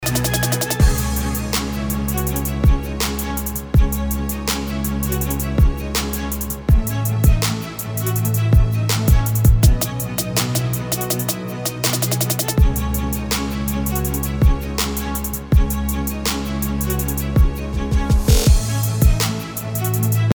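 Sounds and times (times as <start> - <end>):
music beat: 0.0 - 20.3.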